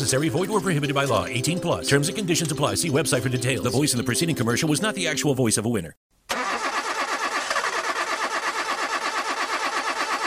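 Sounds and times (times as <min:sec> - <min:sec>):
speech: 0:00.0 - 0:06.1
car engine cranking without starting: 0:06.3 - 0:10.2.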